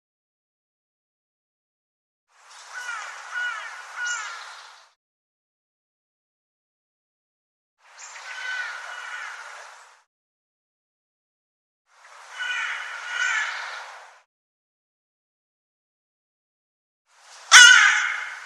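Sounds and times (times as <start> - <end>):
bird harsh raspy calls: 2.6 - 4.8, 8.0 - 9.8, 12.3 - 13.9, 17.5 - 18.4.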